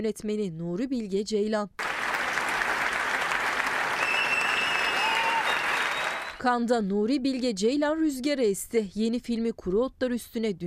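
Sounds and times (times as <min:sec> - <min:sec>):
speech: 0:00.0 - 0:02.0, 0:06.4 - 0:10.6
standing ovation applause in festival theater: 0:01.8 - 0:06.4
whistles: 0:03.7 - 0:06.4.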